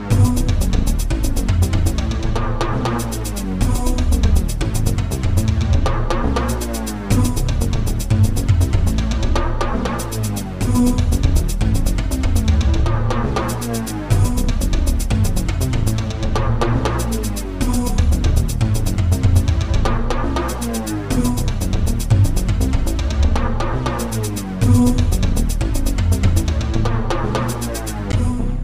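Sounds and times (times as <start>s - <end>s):
tribal drum beat: 0.1s - 28.4s.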